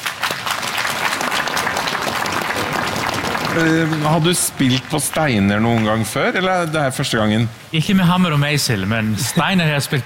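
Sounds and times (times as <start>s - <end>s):
audience applause: 0.0s - 6.9s
speech: 3.6s - 10.0s.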